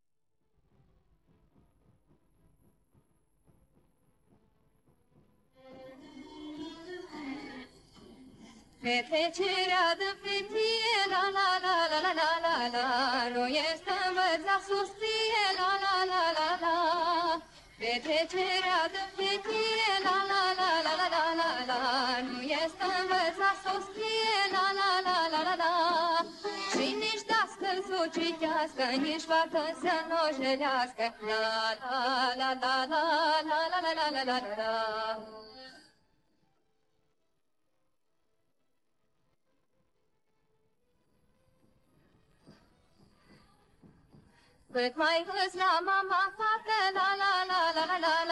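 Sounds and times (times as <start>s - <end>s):
folk vocals: 5.6s - 35.8s, 44.7s - 48.2s.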